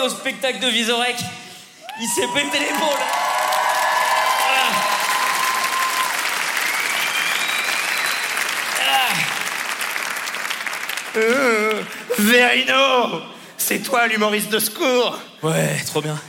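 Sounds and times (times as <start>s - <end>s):
speech: 0.0s - 1.4s, 2.0s - 3.3s, 11.2s - 16.2s
whoops and cheers: 1.8s - 9.5s
audience applause: 1.9s - 12.1s.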